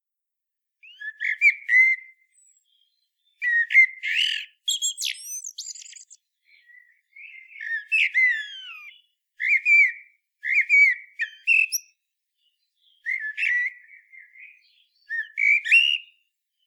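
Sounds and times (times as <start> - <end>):
common blackbird Turdus merula singing fluty warbling phrases: 0.8 - 16.1.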